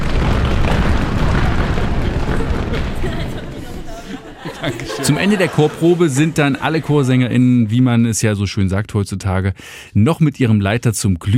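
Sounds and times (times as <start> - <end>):
choir stamping feet loudly: 0.0 - 3.8
laughter: 1.0 - 7.8
speech: 4.6 - 11.3.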